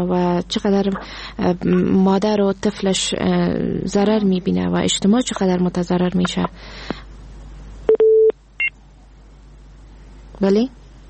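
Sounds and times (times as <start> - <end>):
speech: 0.0 - 7.0, 10.4 - 10.8
telephone tones as a call drops: 7.9 - 8.7.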